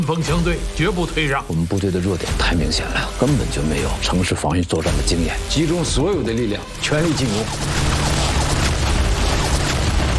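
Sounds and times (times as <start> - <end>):
speech: 0.0 - 8.0
artillery shell blasts destroying bunkers in a war film: 7.4 - 10.1.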